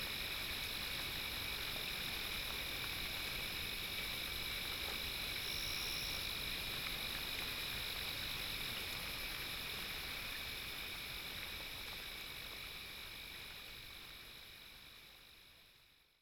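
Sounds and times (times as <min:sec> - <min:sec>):
rain: 0:00.0 - 0:16.1
crickets chirping: 0:00.1 - 0:10.7.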